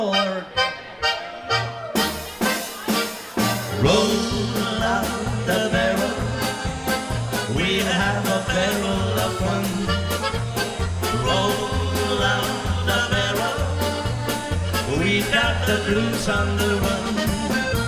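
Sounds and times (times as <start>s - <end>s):
German band playing: 0.1s - 17.8s.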